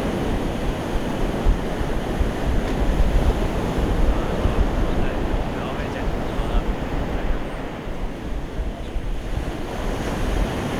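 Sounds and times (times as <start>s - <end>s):
wind gusts buffeting the microphone: 0.0s - 10.7s
sea surf in Hualian, Taiwan: 2.4s - 8.6s.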